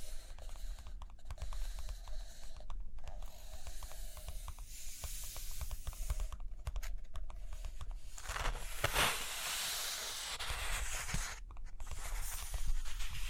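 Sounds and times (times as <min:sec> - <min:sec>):
pen or pencil scratching and tapping on paper: 0:00.0 - 0:13.2
paper rustling: 0:08.1 - 0:13.2.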